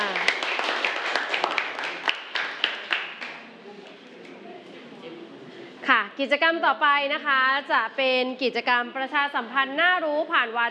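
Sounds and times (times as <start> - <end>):
classroom applause: 0.0 - 3.5
speech: 6.2 - 10.6.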